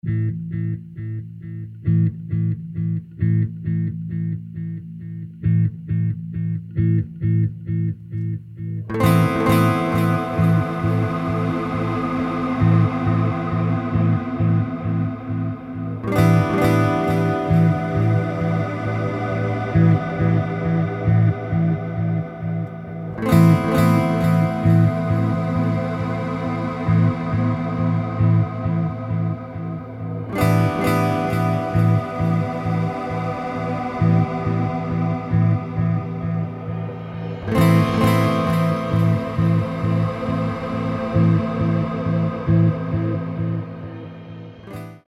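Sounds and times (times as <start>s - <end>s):
acoustic music: 0.0s - 45.0s.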